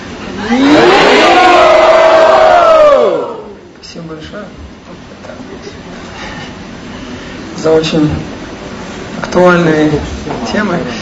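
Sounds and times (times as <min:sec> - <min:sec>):
speech: 0:00.4 - 0:00.6, 0:07.6 - 0:08.3, 0:09.4 - 0:11.0
crowd loudly shouting a devotional chant: 0:00.5 - 0:03.6.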